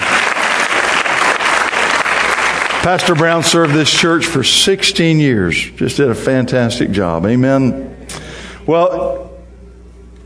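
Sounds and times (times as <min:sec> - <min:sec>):
crowd applause: 0:00.0 - 0:04.2
speech: 0:02.8 - 0:09.2.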